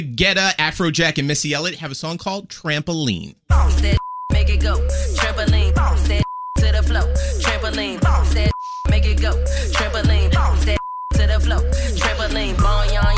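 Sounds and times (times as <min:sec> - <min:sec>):
speech: 0:00.0 - 0:04.0, 0:04.6 - 0:13.1
censor bleep over a swear word: 0:04.0 - 0:04.4, 0:08.5 - 0:08.9.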